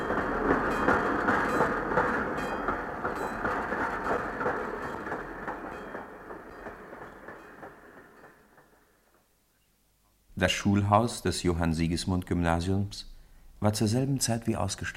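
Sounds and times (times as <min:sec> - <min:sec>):
steam train puffing out of a station hall: 0:00.0 - 0:08.9
steam train wheels rumbling: 0:00.0 - 0:09.0
speech: 0:10.4 - 0:14.9.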